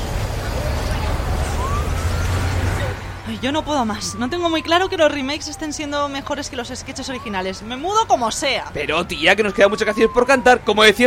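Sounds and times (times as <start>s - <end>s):
bus rumbling past pedestrians: 0.0s - 11.0s
constant road noise: 0.0s - 11.0s
speech: 3.4s - 11.0s.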